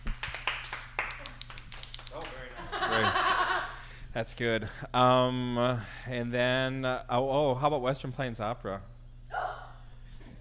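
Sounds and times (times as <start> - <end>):
small group clapping: 0.0 - 2.8
laughter: 2.4 - 3.9
speech: 4.2 - 8.9.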